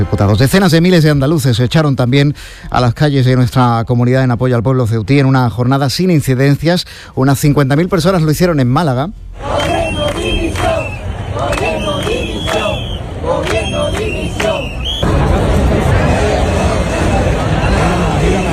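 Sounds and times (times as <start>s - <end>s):
speech: 0.0s - 9.7s
protest crowd shouting: 9.4s - 18.5s
applause: 9.6s - 15.0s.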